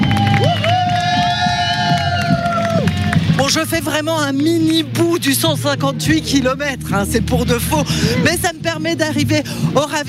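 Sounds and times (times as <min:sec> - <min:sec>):
spectators cheering and whooping for a runner on a 158 km trail race: 0:00.0 - 0:04.0
speech: 0:03.6 - 0:10.0.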